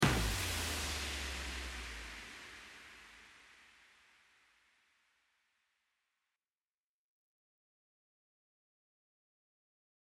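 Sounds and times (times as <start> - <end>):
bomb exploding: 0.0 - 3.6.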